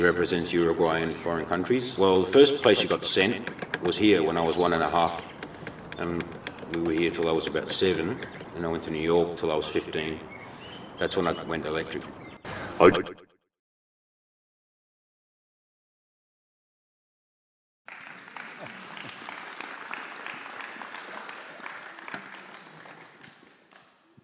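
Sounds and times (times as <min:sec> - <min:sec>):
speech: 0:00.0 - 0:05.4, 0:06.0 - 0:10.3, 0:11.0 - 0:12.2, 0:12.8 - 0:13.2
crowd applause: 0:17.9 - 0:23.9.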